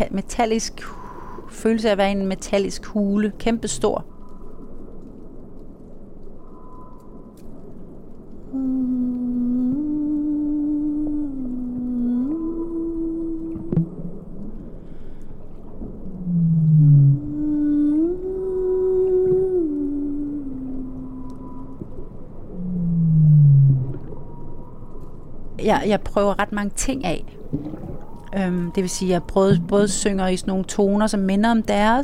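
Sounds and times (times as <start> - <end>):
speech: 0.0 - 4.1, 25.7 - 32.0
steady low underwater rumble: 3.3 - 31.3
whale song recorded underwater: 6.2 - 25.6, 27.3 - 30.3.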